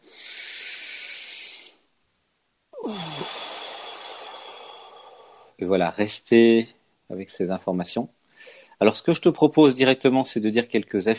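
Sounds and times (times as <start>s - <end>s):
deep breath taken together: 0.0s - 1.8s, 2.8s - 5.6s, 8.3s - 8.8s
speech: 5.6s - 11.1s.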